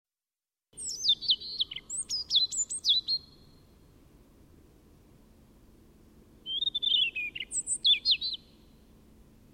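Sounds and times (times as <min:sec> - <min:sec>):
European robin song: 0:00.8 - 0:04.0, 0:06.4 - 0:08.9.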